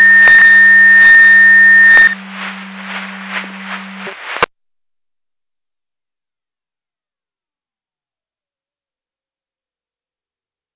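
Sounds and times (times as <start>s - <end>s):
siren: 0.0s - 2.2s.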